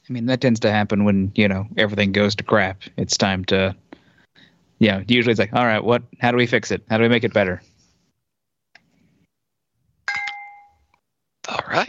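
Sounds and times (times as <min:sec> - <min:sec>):
speech: 0:00.1 - 0:03.8, 0:04.8 - 0:07.7
fancy wine glass ringing: 0:10.1 - 0:10.9.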